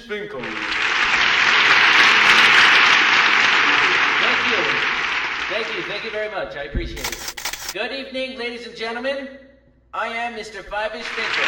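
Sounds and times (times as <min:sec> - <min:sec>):
speech: 0:00.0 - 0:00.8, 0:06.0 - 0:11.4
audience clapping welcoming a presidential candidate onstage: 0:00.3 - 0:06.4, 0:11.0 - 0:11.4.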